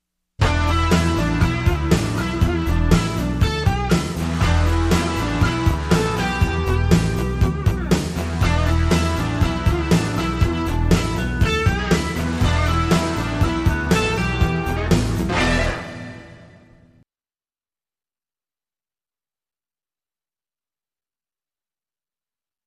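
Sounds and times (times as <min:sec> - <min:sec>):
Fender Stratocaster electric guitar: 0:00.4 - 0:16.7.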